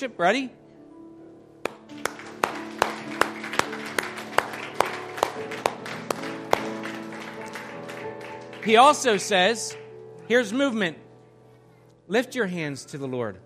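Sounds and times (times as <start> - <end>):
speech: 0.0 - 0.6, 8.6 - 11.0, 12.1 - 13.4
audience clapping hands: 1.6 - 9.9.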